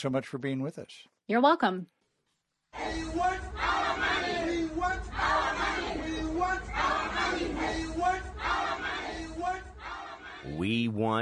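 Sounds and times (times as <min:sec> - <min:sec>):
speech: 0:00.0 - 0:02.0, 0:10.4 - 0:11.2
crowd of content moderators in Kenya chanting in unison: 0:02.8 - 0:10.6.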